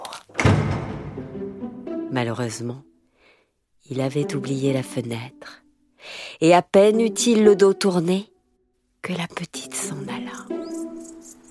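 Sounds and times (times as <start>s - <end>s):
stable door shut and double-locked: 0.3s - 1.7s
speech: 2.1s - 2.9s, 3.8s - 8.3s, 9.0s - 10.2s.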